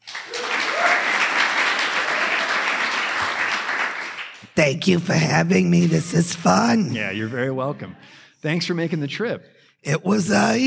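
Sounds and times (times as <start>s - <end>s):
audience applause welcoming a guest onto a comedy talk show: 0.0s - 4.5s
speech: 4.6s - 10.6s.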